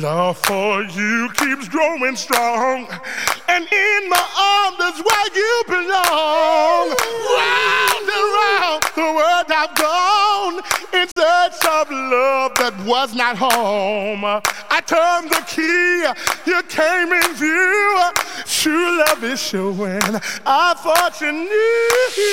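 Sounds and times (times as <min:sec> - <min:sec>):
a cappella singing: 0:00.0 - 0:22.3.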